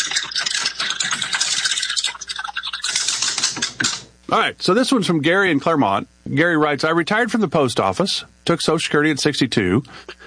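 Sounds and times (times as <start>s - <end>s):
prize wheel spinning: 0.0s - 4.1s
speech: 4.3s - 10.2s.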